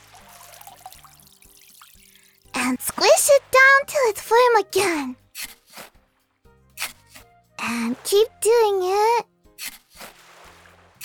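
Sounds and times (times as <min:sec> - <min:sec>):
water poured onto packed sand for a sandcastle foundation: 0:00.0 - 0:02.5, 0:05.4 - 0:06.0, 0:09.6 - 0:11.0
speech: 0:02.7 - 0:05.2, 0:07.7 - 0:09.3.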